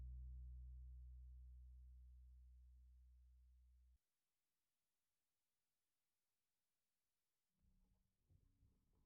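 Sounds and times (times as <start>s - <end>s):
bass effect: 0.0s - 3.8s.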